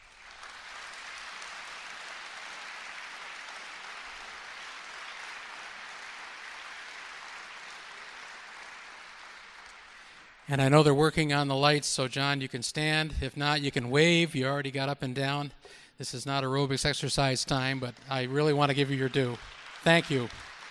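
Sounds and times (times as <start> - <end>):
audience applause: 0.0 - 11.0, 17.2 - 20.6
speech: 10.5 - 20.5.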